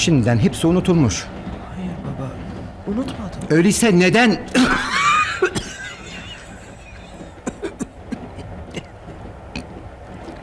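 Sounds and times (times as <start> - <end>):
speech: 0.0 - 1.4, 2.9 - 4.8
man choking and coughing as if something is stuck in his throat: 4.5 - 6.3, 7.2 - 8.9
laughter: 4.5 - 7.8.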